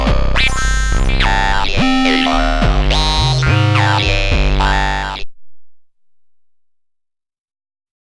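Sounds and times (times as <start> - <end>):
Dreadbox Polyend Medusa synthesizer: 0.0 - 5.3.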